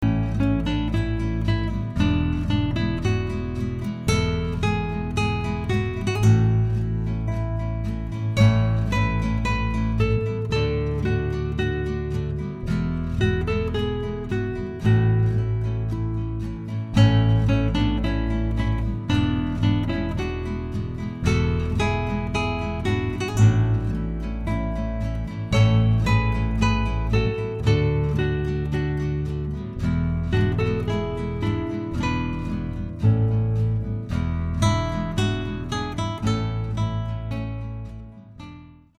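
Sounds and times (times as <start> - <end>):
Mexican guitars playing: 0.0 - 38.9.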